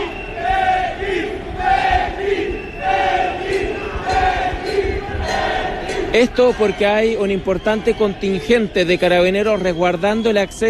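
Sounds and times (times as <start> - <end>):
protesting cyclists chanting slogans outside a church: 0.0 - 8.0
speech: 6.2 - 10.6.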